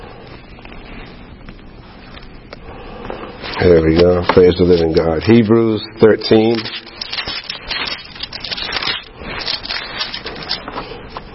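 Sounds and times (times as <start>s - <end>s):
paper Bible pages rustling: 3.4s - 5.5s, 6.2s - 11.3s
speech: 3.6s - 6.8s.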